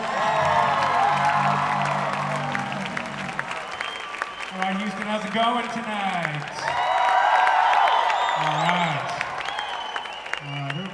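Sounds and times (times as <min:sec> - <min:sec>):
concert audience applauding in Houston: 0:00.0 - 0:10.9
concert audience cheering in Houston: 0:00.0 - 0:10.9
concert audience whistling in Houston: 0:03.4 - 0:04.8, 0:07.8 - 0:10.9
speech: 0:05.3 - 0:06.9.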